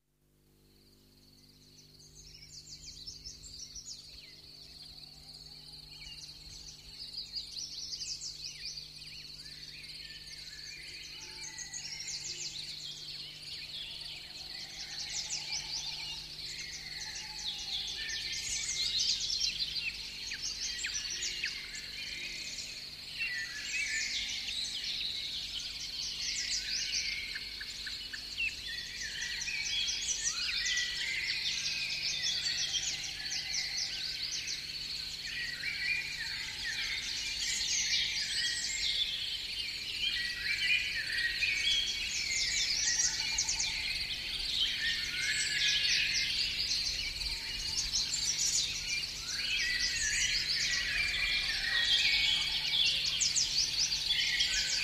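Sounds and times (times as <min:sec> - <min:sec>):
morning birdsong: 0:00.8 - 0:54.8.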